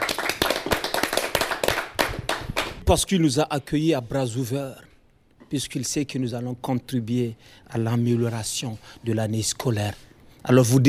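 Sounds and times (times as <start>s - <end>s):
audience applause for a school principal: 0.0s - 2.8s
speech: 2.9s - 4.8s, 5.5s - 10.8s.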